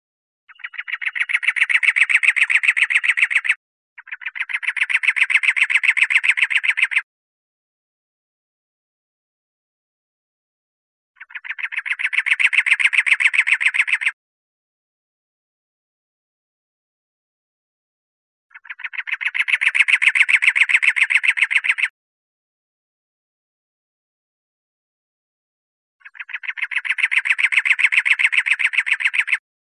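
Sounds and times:
wren rasping rattle: 0.5 - 7.0, 11.2 - 14.1, 18.5 - 21.9, 26.0 - 29.4.

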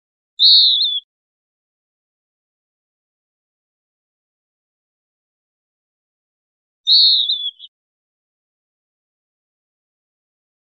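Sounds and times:
western wood pewee call: 0.4 - 1.1, 6.9 - 7.7.

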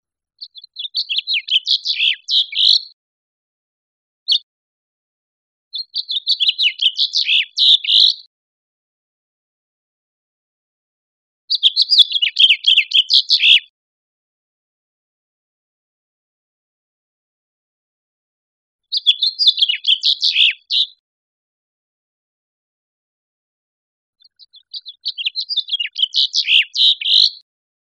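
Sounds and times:
house finch warbling song: 0.4 - 3.0, 5.8 - 8.3, 11.5 - 13.7, 18.9 - 20.9, 24.2 - 27.4.

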